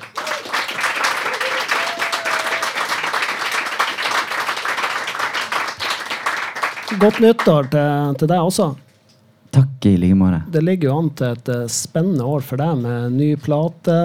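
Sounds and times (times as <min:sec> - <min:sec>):
audience applause: 0:00.0 - 0:07.8
speech: 0:06.9 - 0:08.8, 0:09.5 - 0:14.0.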